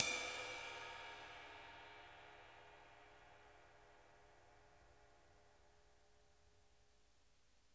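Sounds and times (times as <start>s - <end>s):
ride cymbal: 0.0s - 4.7s.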